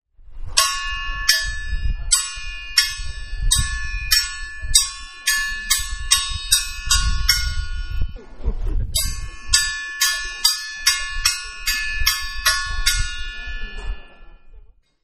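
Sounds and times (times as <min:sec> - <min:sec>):
school bell ringing: 0:00.6 - 0:08.2, 0:09.0 - 0:14.5.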